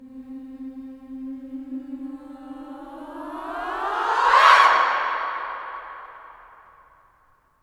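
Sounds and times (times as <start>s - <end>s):
female swooping sound: 2.9s - 6.8s.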